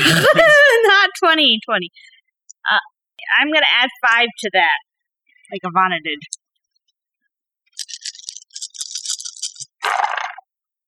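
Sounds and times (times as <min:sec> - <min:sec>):
speech: 0:00.1 - 0:00.6, 0:01.2 - 0:04.9, 0:05.5 - 0:06.4
dice rattling in a cup: 0:07.8 - 0:09.7.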